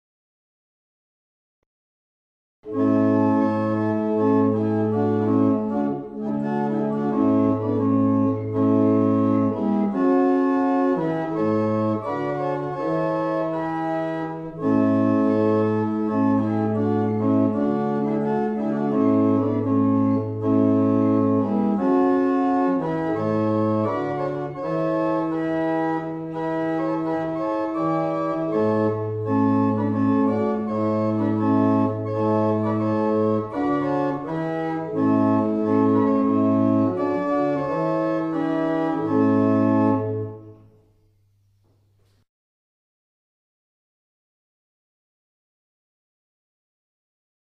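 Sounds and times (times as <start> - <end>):
barrel organ: 2.6 - 42.0.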